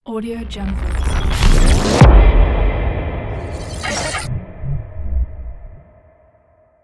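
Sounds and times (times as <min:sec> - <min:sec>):
glitchy logo sound: 0:00.4 - 0:05.9.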